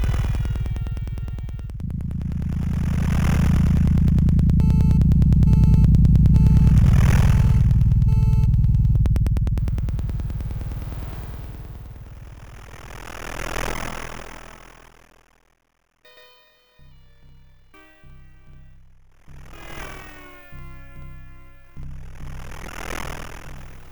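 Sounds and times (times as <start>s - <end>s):
ambient noise in front of a station: 0.0s - 14.0s.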